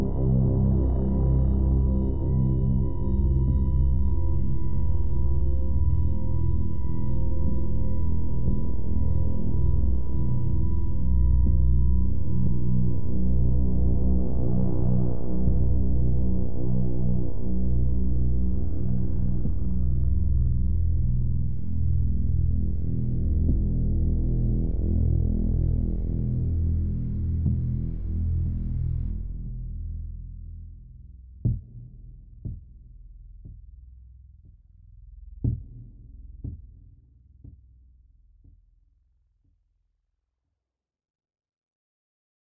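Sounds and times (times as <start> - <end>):
suspense music loop: 0.0 - 30.0.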